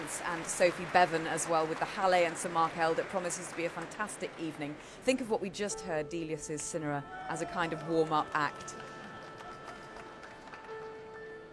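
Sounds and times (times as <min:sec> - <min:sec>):
concert audience applause: 0:00.0 - 0:04.8, 0:07.4 - 0:11.5
speech: 0:00.2 - 0:08.9.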